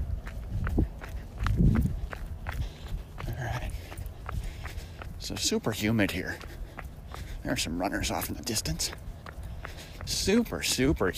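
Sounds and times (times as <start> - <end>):
footsteps walking down stairs on an outdoor trail: 0.0 - 11.1
speech: 5.3 - 6.6, 7.4 - 9.1, 10.1 - 11.1.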